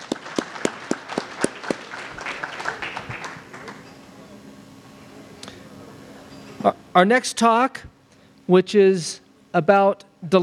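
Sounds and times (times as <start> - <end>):
audience applause: 0.0 - 3.9
speech: 6.6 - 7.9, 8.5 - 10.4.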